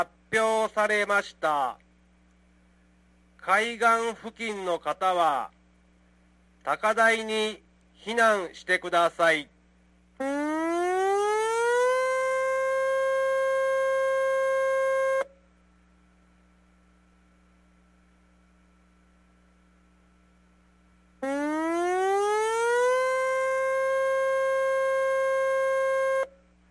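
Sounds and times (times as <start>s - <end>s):
speech: 0.0s - 1.8s, 3.4s - 5.6s, 6.6s - 9.6s, 10.2s - 10.5s
tsunami warning siren: 10.2s - 15.3s, 21.2s - 26.4s.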